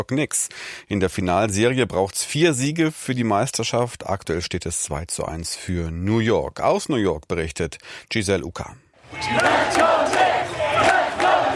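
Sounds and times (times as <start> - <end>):
speech: 0.0 - 10.2
crowd cheering on basketball team in Manhattan: 9.0 - 11.5.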